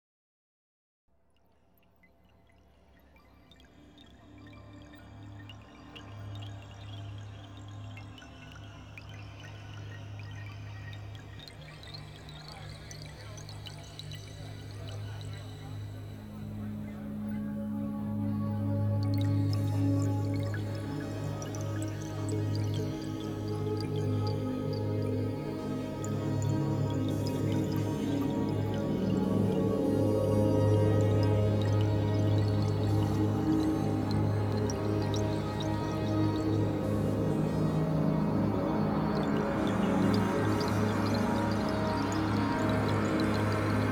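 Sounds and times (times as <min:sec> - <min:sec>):
inter-planetary ambience: 0:15.1 - 0:43.9.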